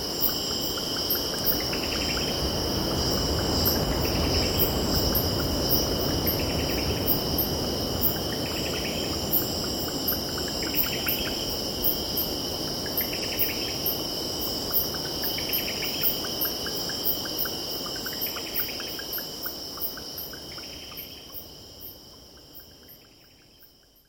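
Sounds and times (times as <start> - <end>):
cicadas buzzing: 0.0 - 24.0.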